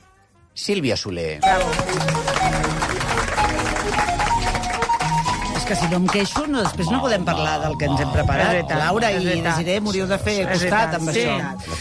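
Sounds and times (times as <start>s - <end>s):
speech: 0.6s - 5.0s, 5.7s - 11.8s
studio audience applause: 1.4s - 6.9s.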